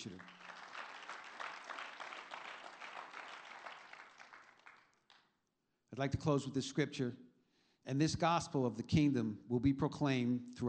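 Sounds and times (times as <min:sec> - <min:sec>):
speech: 0:00.0 - 0:00.3, 0:05.9 - 0:07.3, 0:07.9 - 0:10.6
audience applause: 0:00.0 - 0:05.2.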